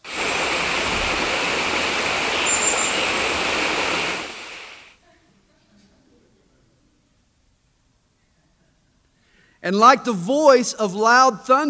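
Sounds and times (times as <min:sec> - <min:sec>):
rushing water: 0:00.0 - 0:04.9
speech: 0:09.6 - 0:11.6.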